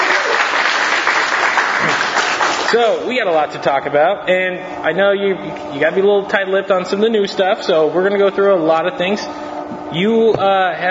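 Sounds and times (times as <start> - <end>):
audience applause: 0.0 - 2.8
speech: 2.7 - 10.8.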